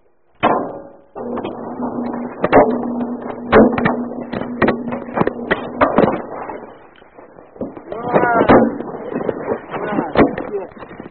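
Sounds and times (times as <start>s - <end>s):
phone tumbling inside a running clothes dryer: 1.1s - 11.1s.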